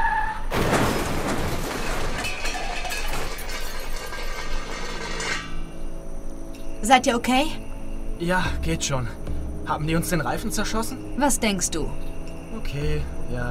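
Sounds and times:
car crashing into roadside barrier: 0.5s - 5.6s
speech: 6.8s - 7.6s, 8.2s - 13.4s.

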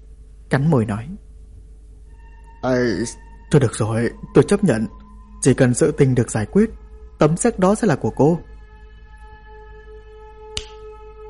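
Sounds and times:
speech: 0.5s - 1.3s, 2.6s - 8.5s
finger snap over the phone: 10.5s - 11.0s.

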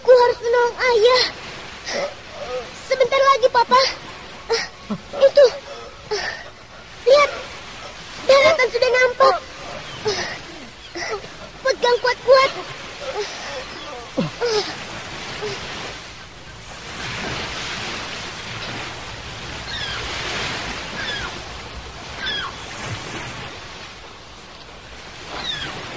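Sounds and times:
large ocean waves crashing onto shore: 0.0s - 25.9s
faint high cries: 3.8s - 15.7s, 19.6s - 20.1s, 20.9s - 21.4s, 22.1s - 22.7s, 25.3s - 25.8s.

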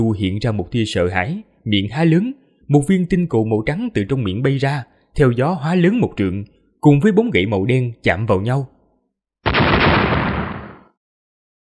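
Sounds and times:
speech: 0.0s - 8.7s
thunderous explosion sound effect: 9.5s - 10.9s.

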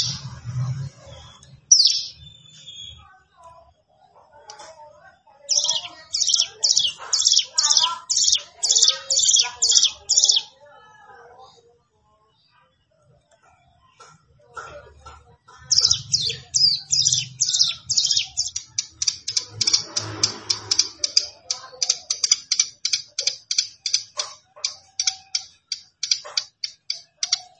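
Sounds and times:
plain prinia singing: 0.0s - 3.1s, 5.3s - 10.6s, 15.7s - 27.5s.

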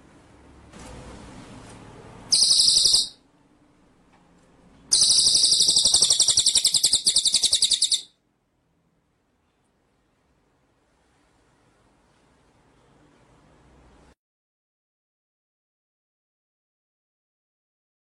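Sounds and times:
white-rumped shama trilling song: 2.3s - 3.2s, 4.9s - 8.1s.

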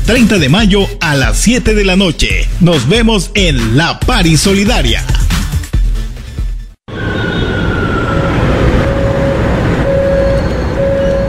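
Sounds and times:
speech: 0.1s - 5.3s
subway train rumble and rattle: 7.1s - 11.2s.

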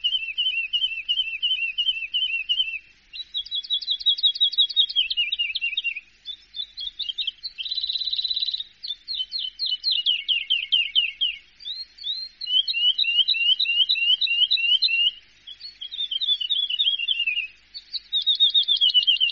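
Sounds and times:
bird song: 0.0s - 19.2s.

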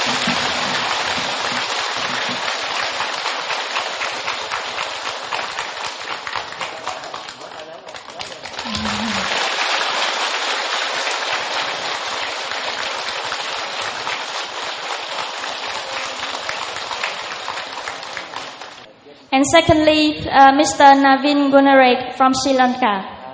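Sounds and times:
audience applause: 0.0s - 18.9s
speech: 19.4s - 23.1s.

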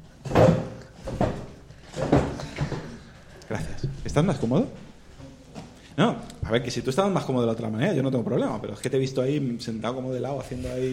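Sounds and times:
chair scraping and thumping as a seated person adjusts it: 0.1s - 5.8s
speech: 4.2s - 4.9s, 6.0s - 10.9s.

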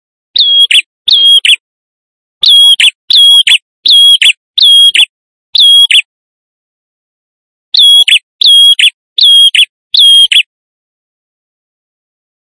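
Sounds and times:
male prinia in vigorous song used as a lure: 0.4s - 1.6s, 2.4s - 6.1s, 7.7s - 10.5s.

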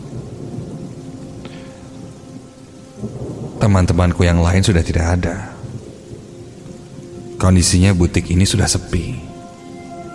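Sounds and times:
deep rumble of thunder with a sharp crack: 0.0s - 10.1s
heavy rain pouring outside: 0.0s - 10.1s
speech: 3.0s - 5.5s, 7.4s - 9.3s.

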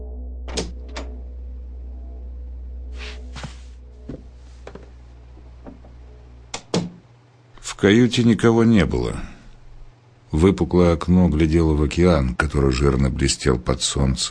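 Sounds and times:
steady low hum: 0.0s - 14.2s
cabin door handle pressed with sharp clicks: 0.5s - 1.2s
knocks: 6.6s - 7.0s
speech: 7.8s - 9.4s, 10.3s - 14.2s.

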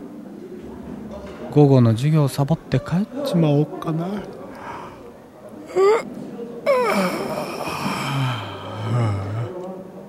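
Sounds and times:
speech: 1.5s - 4.4s
long drawn-out yawn: 6.7s - 9.6s.

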